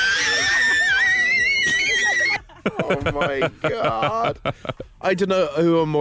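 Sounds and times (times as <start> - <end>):
child letting out a long shrill scream: 0.0 - 2.4
laughter: 0.0 - 5.0
speech: 2.7 - 6.0.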